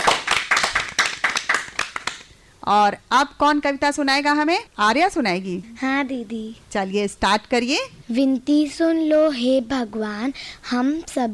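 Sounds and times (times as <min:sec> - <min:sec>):
audience clapping: 0:00.0 - 0:02.3
speech: 0:02.6 - 0:11.3.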